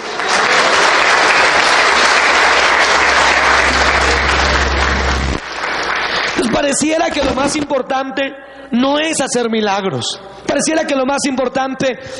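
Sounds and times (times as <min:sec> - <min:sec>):
audience applauding: 0:00.0 - 0:07.0
speech: 0:06.7 - 0:12.1.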